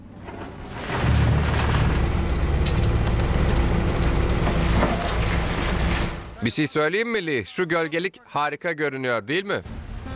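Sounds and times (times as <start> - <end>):
truckload of soil being dumped: 0.2 - 6.4
speech: 6.4 - 9.8.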